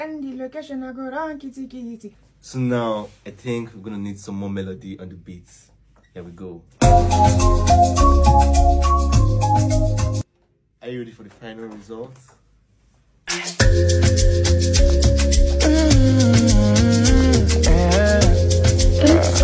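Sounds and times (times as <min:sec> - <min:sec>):
amapiano music: 0:06.8 - 0:10.2, 0:13.6 - 0:19.4.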